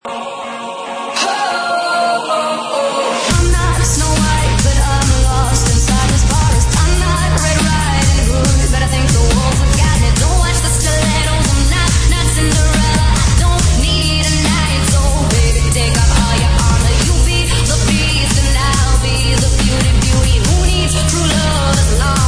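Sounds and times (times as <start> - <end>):
dubstep remix: 0.0 - 22.2.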